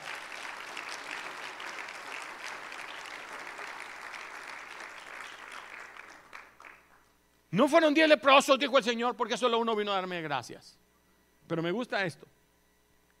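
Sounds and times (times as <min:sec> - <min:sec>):
audience applause: 0:00.0 - 0:07.1
speech: 0:07.5 - 0:10.8, 0:11.5 - 0:12.4.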